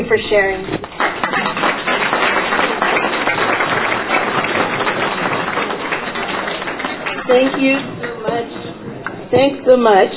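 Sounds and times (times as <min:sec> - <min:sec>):
speech: 0:00.0 - 0:00.8, 0:07.3 - 0:08.5, 0:09.3 - 0:10.1
audience applause: 0:00.8 - 0:08.8.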